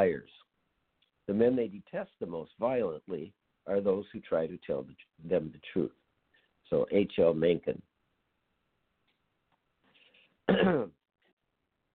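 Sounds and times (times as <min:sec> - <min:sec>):
speech: 0:00.0 - 0:00.4, 0:01.3 - 0:06.0, 0:06.7 - 0:07.9, 0:10.5 - 0:11.0
throat clearing: 0:10.5 - 0:11.0.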